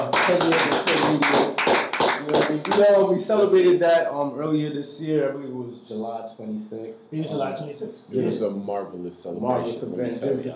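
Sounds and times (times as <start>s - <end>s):
small group clapping: 0.0s - 3.1s
speech: 0.3s - 1.4s, 2.7s - 10.5s.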